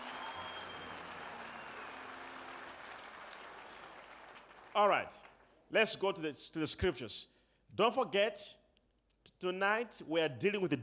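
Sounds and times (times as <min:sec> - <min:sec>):
audience clapping hands: 0:00.0 - 0:05.6
speech: 0:04.8 - 0:08.6, 0:09.2 - 0:10.8.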